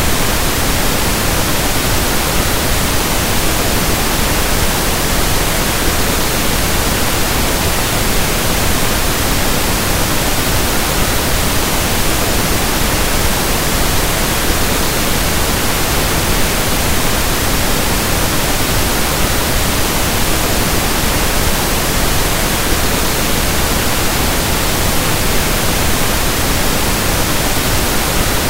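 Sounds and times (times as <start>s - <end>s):
pink noise: 0.0s - 28.4s.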